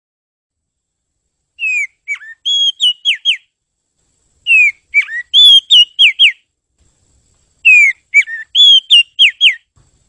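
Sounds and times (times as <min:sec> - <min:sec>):
bird whistling bright pure notes: 0:01.6 - 0:03.5, 0:04.4 - 0:06.5, 0:07.6 - 0:09.7.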